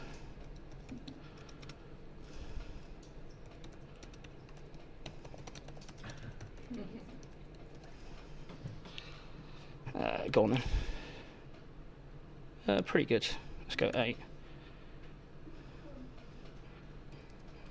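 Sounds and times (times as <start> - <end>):
typing a short chatbot message on a computer keyboard: 0.2 - 1.8, 3.0 - 8.1, 17.1 - 17.7
speech: 10.3 - 10.9, 12.7 - 14.3.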